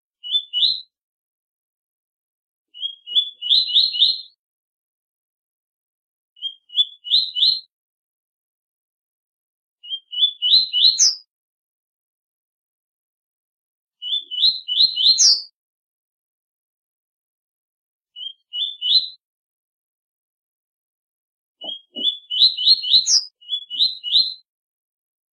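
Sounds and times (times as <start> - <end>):
double-collared seedeater singing rising whistled phrases: 0.2 - 0.9, 2.7 - 4.4, 6.4 - 7.7, 9.8 - 11.3, 14.0 - 15.5, 18.2 - 19.2, 21.6 - 24.5.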